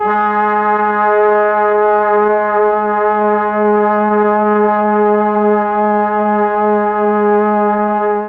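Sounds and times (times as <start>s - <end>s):
Mellotron brass G sharp three note: 0.0s - 8.2s.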